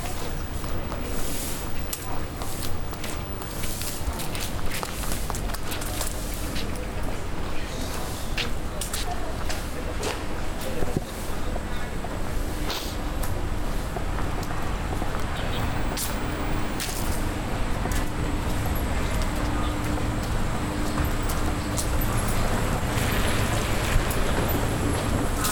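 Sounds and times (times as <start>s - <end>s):
passing vehicles in Nanluoguxiang, Beijing: 0.0s - 8.1s, 12.0s - 25.5s
crowd chatter in Nanluoguxiang hutong street, Beijing: 0.0s - 25.5s.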